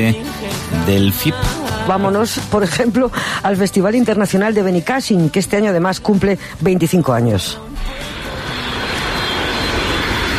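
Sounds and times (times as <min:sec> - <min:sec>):
speech: 0:00.0 - 0:08.2
Falcon jet airplane passing: 0:07.8 - 0:10.3.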